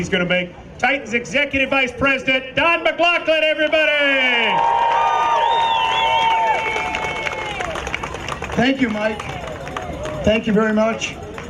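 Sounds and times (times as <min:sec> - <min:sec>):
speech: 0:00.0 - 0:06.2, 0:08.6 - 0:09.4, 0:10.2 - 0:11.4
audience cheering: 0:04.1 - 0:10.2
audience applause: 0:04.5 - 0:11.4.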